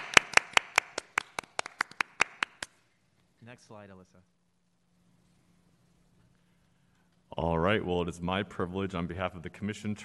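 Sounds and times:
audience applause: 0:00.0 - 0:02.7
speech: 0:03.5 - 0:04.4, 0:07.4 - 0:10.0.

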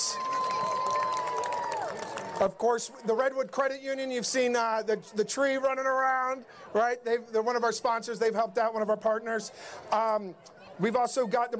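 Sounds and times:
crowd applauding and cheering: 0:00.0 - 0:02.8
speech: 0:02.4 - 0:11.5.

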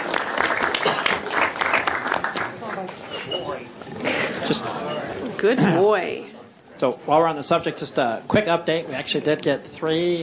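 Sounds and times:
crowd applause for Thor the dog: 0:00.0 - 0:03.0
speech: 0:04.5 - 0:04.8, 0:05.4 - 0:10.2.

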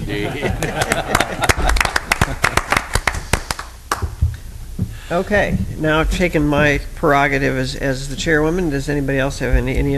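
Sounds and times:
laughter: 0:00.0 - 0:02.8
speech: 0:00.1 - 0:01.6, 0:05.1 - 0:09.9
applause from meeting audience: 0:00.7 - 0:03.7.

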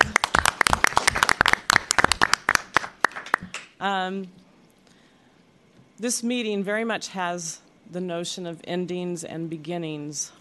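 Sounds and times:
round of applause: 0:00.0 - 0:03.7
speech: 0:03.8 - 0:04.4, 0:06.0 - 0:10.3.

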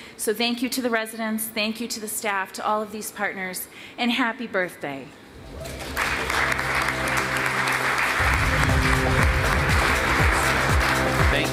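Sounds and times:
speech: 0:00.2 - 0:05.8
low rumbling: 0:05.3 - 0:07.4, 0:08.2 - 0:10.9
crowd applause: 0:05.4 - 0:11.5.

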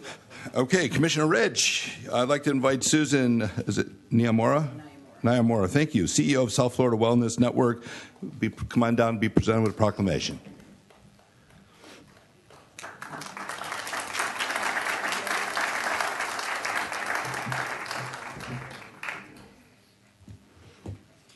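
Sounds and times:
speech: 0:00.1 - 0:10.5
audience applause: 0:12.5 - 0:19.6.

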